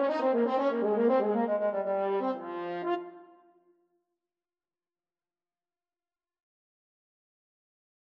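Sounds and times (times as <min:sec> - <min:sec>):
French horn playing in a duet: 0:00.0 - 0:03.4
bassoon playing in a duet: 0:00.0 - 0:03.4.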